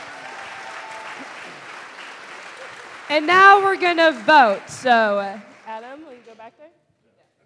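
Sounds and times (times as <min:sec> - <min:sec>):
audience applause at a live quiz-style game event: 0:00.0 - 0:06.4
speech: 0:03.1 - 0:05.5.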